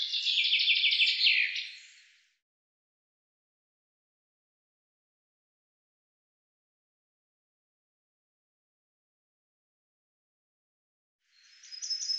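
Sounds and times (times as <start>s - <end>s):
bird giving a fast run of sharp high chirps: 0.0s - 2.2s, 11.3s - 12.1s.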